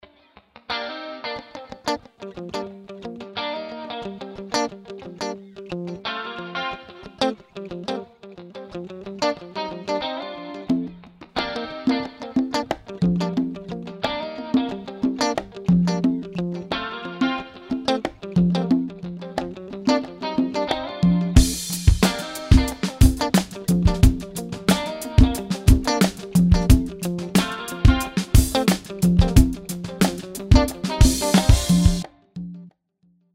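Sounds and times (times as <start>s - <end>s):
guitar: 0.0s - 32.7s.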